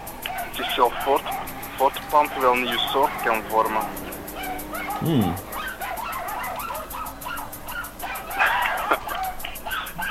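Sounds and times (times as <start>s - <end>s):
speech: 0.8s - 4.1s, 5.0s - 5.5s
very small dog whining and yelping in a studio: 4.4s - 8.5s
laughter: 8.3s - 10.0s.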